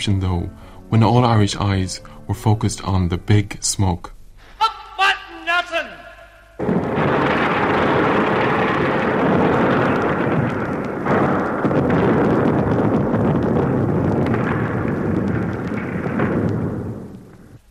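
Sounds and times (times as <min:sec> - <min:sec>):
speech: 0:00.0 - 0:04.2
massive explosion: 0:06.6 - 0:17.6.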